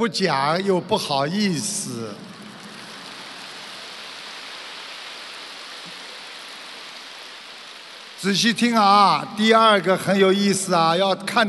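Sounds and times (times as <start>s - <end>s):
speech: 0.0s - 2.3s, 8.2s - 11.4s
audience applause: 1.6s - 9.9s.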